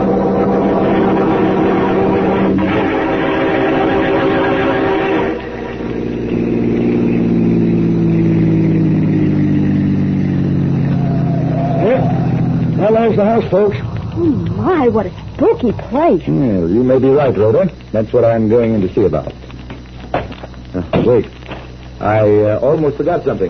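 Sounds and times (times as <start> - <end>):
car engine driving away: 0.0 - 17.0
speech: 13.5 - 13.9, 14.6 - 19.4, 21.1 - 21.4, 22.0 - 23.4.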